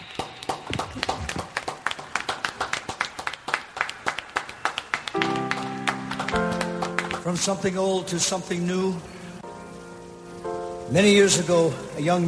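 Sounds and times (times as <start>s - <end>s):
concert audience clapping in a steady rhythm: 0.0s - 8.9s
speech: 7.3s - 9.2s, 10.9s - 12.2s.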